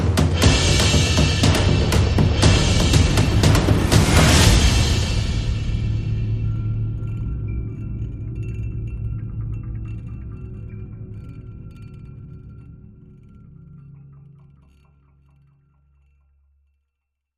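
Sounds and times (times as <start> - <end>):
sound effects: 0.0 - 13.0
percussion: 0.0 - 17.2.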